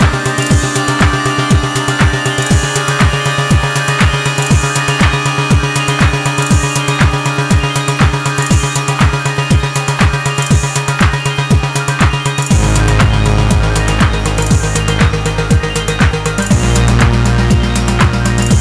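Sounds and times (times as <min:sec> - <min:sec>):
instrumental synthesizer music on Rev2 synthesizer and M32: 0:00.0 - 0:18.5.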